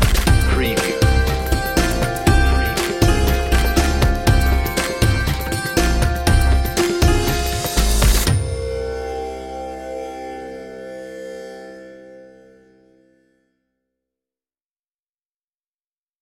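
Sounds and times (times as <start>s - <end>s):
Bollywood pop underscore music: 0.0s - 9.3s.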